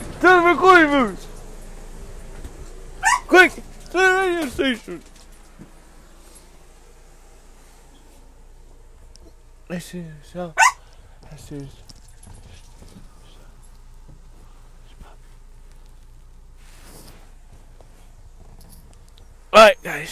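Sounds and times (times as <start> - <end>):
speech: 0.2 - 1.3, 3.3 - 5.1, 9.7 - 11.8, 19.6 - 20.0
dog barking in high-pitched yips: 3.0 - 3.6, 10.6 - 10.8.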